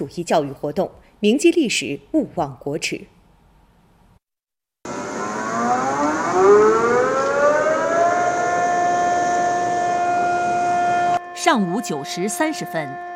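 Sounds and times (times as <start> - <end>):
speech: 0.0 - 3.2, 11.4 - 13.1
air-raid warning siren winding up and wailing: 4.9 - 13.1.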